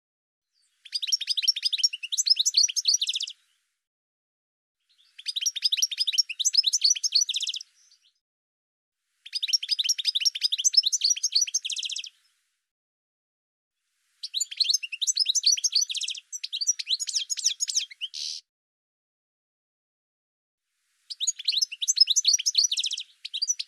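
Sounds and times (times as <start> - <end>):
bird song with high chirps, down-slurred notes and quick trills: 0.5 - 3.6, 4.8 - 8.2, 9.2 - 12.4, 14.2 - 18.5, 21.0 - 23.6.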